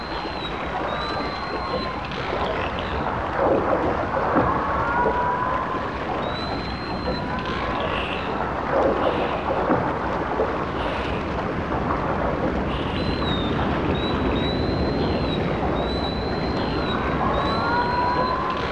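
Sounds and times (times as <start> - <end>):
dolphin whistle: 0.0 - 3.0, 5.0 - 8.3, 12.8 - 18.7
continuous rushing background noise: 0.0 - 18.7.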